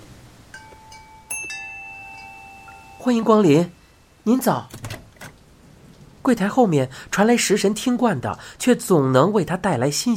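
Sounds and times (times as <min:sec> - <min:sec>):
door bell chimes: 0:00.6 - 0:04.2
speech: 0:03.0 - 0:04.8, 0:06.3 - 0:10.1
glass shop door pushed open: 0:04.7 - 0:05.4.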